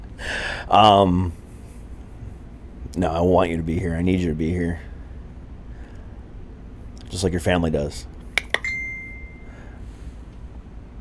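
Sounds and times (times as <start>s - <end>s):
speech: 0.7s - 1.4s, 3.0s - 4.9s, 7.1s - 8.1s
phone message notification chime: 8.6s - 9.5s.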